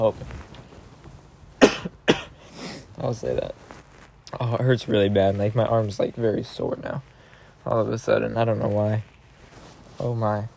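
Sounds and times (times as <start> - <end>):
speech: 0.0 - 0.4, 3.0 - 3.6, 4.3 - 9.1, 10.0 - 10.5
person coughing: 1.6 - 2.9.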